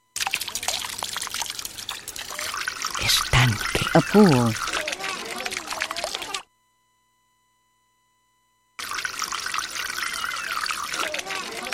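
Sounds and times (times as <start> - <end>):
water trickling from a fountain: 0.1 - 6.4, 8.8 - 11.7
speech: 3.0 - 4.7.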